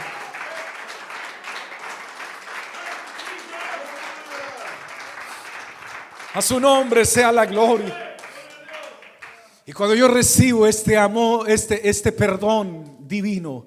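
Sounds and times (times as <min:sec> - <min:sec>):
audience applauding: 0:00.0 - 0:09.6
speech: 0:06.3 - 0:08.1, 0:09.8 - 0:13.6.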